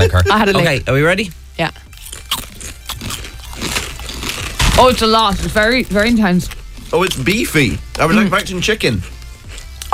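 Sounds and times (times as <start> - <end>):
speech: 0.1 - 1.8, 4.8 - 9.1
beefy roast-flavoured crisps being crunched: 1.9 - 7.6.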